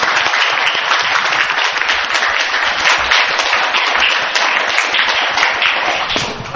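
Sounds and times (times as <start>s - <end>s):
crowd applauding: 0.0s - 6.4s.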